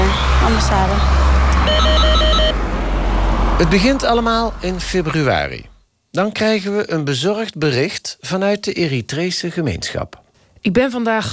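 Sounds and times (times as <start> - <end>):
traffic rumble: 0.0 - 5.8
speech: 0.5 - 1.2, 3.6 - 11.3
electronic doorbell ringing at embassy door: 1.6 - 2.6.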